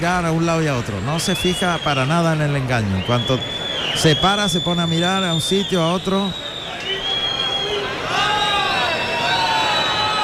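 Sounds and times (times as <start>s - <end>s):
speech: 0.0s - 6.9s
angry bullfight crowd jeering at the bull's behaviour: 6.5s - 10.2s.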